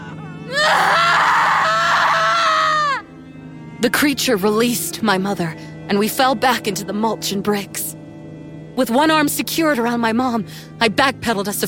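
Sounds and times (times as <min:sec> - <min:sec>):
two people screaming: 0:00.5 - 0:03.0
speech: 0:03.8 - 0:08.0, 0:08.8 - 0:11.6.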